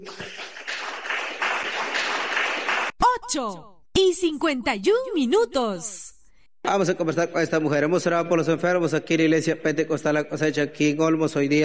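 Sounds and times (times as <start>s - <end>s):
audience applauding: 0.0s - 3.0s
speech: 3.3s - 6.0s, 6.7s - 11.6s.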